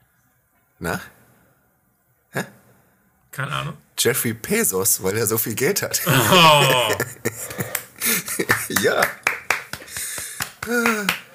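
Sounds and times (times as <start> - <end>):
speech: 0.8 - 1.2, 2.3 - 2.6, 3.4 - 7.7, 8.3 - 9.2, 10.7 - 11.2
laughter: 6.0 - 9.2
hand clapping: 6.9 - 11.3.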